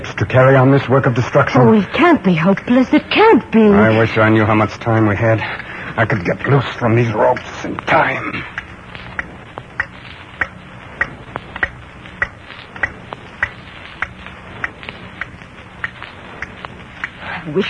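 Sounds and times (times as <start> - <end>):
speech: 0.2 - 8.6, 17.5 - 17.6
clock ticking: 7.2 - 7.8, 8.5 - 17.2.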